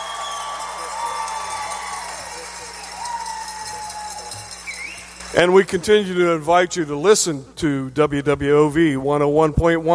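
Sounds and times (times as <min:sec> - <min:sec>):
small studio audience clapping: 0:00.0 - 0:05.9
speech: 0:05.3 - 0:09.9.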